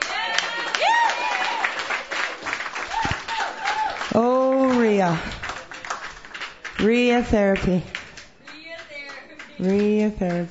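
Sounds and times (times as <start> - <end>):
audience applauding at a Sunday night open mic: 0.0 - 10.4
speech: 5.0 - 5.4, 6.8 - 8.0, 9.6 - 10.4.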